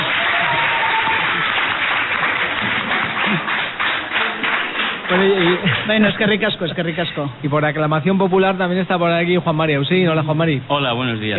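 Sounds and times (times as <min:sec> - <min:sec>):
students applauding: 0:00.0 - 0:06.3
speech: 0:05.2 - 0:11.3.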